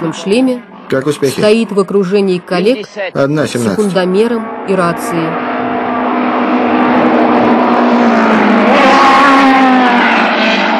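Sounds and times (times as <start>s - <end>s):
speech: 0.0s - 5.5s
race car engines revving to around 11,000 rpm on a racetrack: 0.0s - 10.7s.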